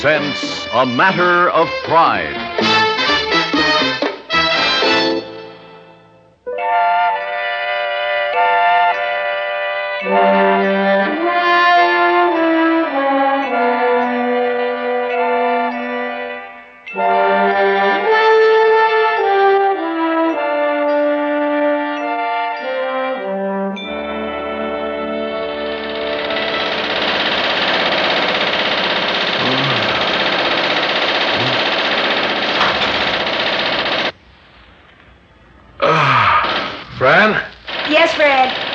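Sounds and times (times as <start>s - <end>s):
speech: 0.0s - 2.7s
sustained tonal music: 0.0s - 28.1s
riveting gun hammering: 25.6s - 34.2s, 36.4s - 38.7s.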